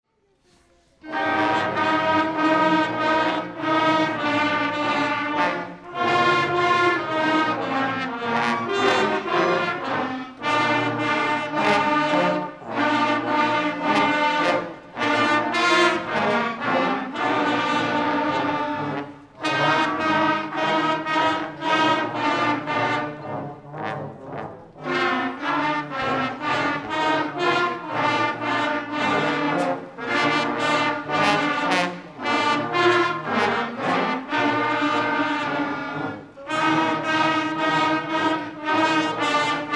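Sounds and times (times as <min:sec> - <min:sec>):
Christmas song: 0:00.1 - 0:39.7.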